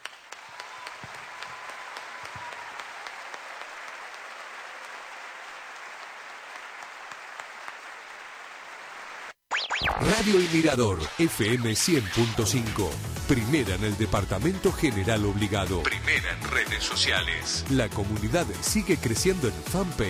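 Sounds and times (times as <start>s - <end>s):
audience applause: 0.0s - 9.4s
speech: 10.0s - 20.0s.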